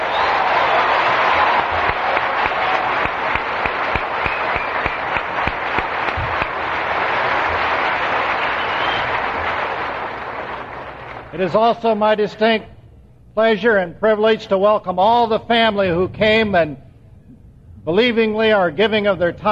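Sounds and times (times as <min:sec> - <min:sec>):
audience applause for the international WOW ambassadors: 0:00.0 - 0:11.4
speech: 0:11.4 - 0:12.7, 0:13.4 - 0:16.8, 0:17.8 - 0:19.5.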